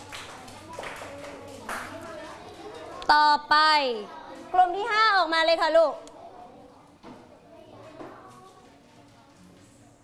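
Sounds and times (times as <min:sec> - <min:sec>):
children clapping for a group of classmates: 0:00.0 - 0:02.2
speech: 0:03.1 - 0:06.1.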